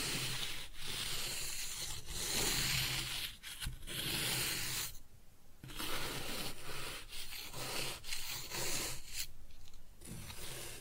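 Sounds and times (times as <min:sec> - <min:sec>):
kinetic sand cut and scooped: 0:00.0 - 0:04.9, 0:05.7 - 0:09.3, 0:10.0 - 0:10.8.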